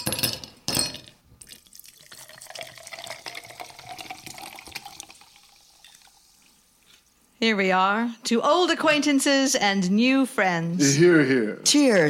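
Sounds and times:
sparkling mineral water poured into glasses: 1.4 - 6.8
speech: 7.4 - 12.0.

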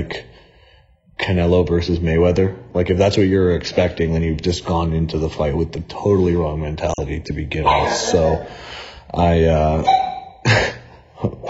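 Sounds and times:
speech: 0.0 - 0.3, 1.2 - 11.4
dog barking: 7.6 - 8.2, 9.8 - 10.4.

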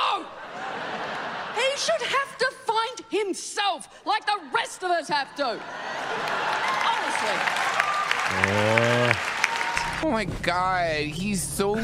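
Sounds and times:
laughter: 0.0 - 2.2, 5.3 - 7.4, 8.3 - 9.2
speech: 1.8 - 2.5, 3.1 - 9.3, 10.0 - 11.8
audience applause: 5.8 - 10.0
single voice holding a sustained call: 8.3 - 9.2.

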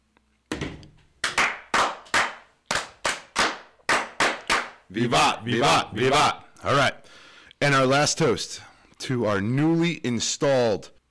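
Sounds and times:
hands clapping in unison for the Masonic fire toast at a Connecticut Grand Lodge installation: 0.8 - 4.9
speech: 4.9 - 11.0.

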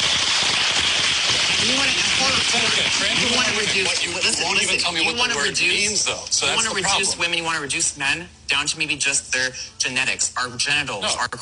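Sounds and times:
audience applause: 0.0 - 4.6
speech: 2.5 - 11.3.

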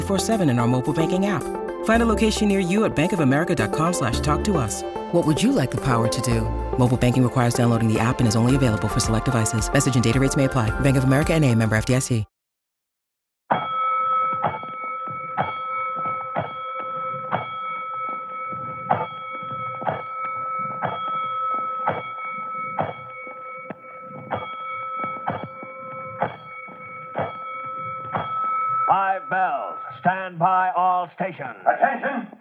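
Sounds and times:
fire alarm bells: 0.0 - 12.2, 13.6 - 30.1
speech: 0.1 - 12.3, 31.1 - 32.3
laughter: 31.6 - 32.3.

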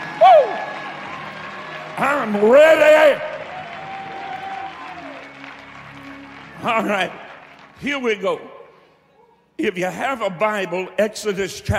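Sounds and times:
audience applauding: 0.0 - 8.4
speech: 2.0 - 3.3, 6.6 - 7.2, 7.8 - 8.5, 9.6 - 11.7.

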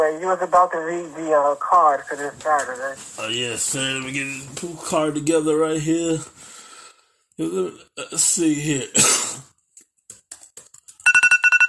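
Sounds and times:
speech: 0.0 - 6.5, 7.4 - 9.5
alarm going off: 11.1 - 11.6.

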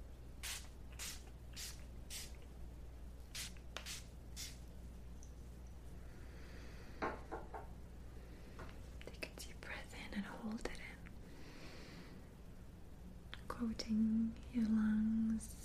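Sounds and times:
low steady hum: 0.0 - 15.6
spray bottle spritzing essential-oil water mist: 0.4 - 2.4, 3.3 - 4.6.

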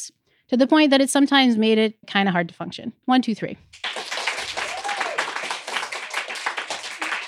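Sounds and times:
speech: 0.0 - 3.9
audience clapping: 3.7 - 7.2.

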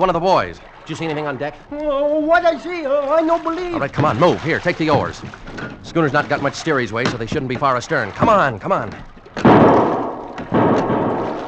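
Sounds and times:
speech: 0.0 - 9.8
gunshots on a schooner's deck in a radio drama: 9.4 - 11.4.

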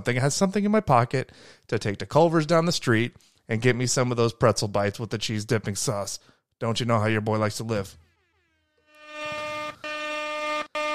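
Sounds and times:
speech: 0.0 - 8.0
air horn sound effect: 8.0 - 10.9.

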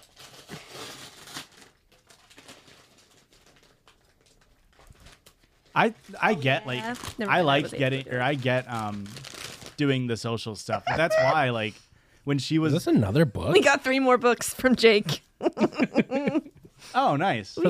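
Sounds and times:
package being ripped open: 0.0 - 5.7, 8.2 - 9.8
speech: 5.8 - 15.2, 15.8 - 17.6
laughter: 10.7 - 11.7, 15.4 - 16.5.

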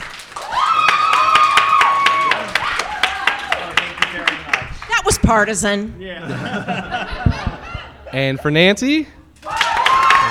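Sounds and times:
steady evenly spaced audience applause: 0.0 - 5.3, 7.1 - 8.0
speech: 5.3 - 7.3, 8.1 - 9.2
laughter: 6.1 - 8.6.

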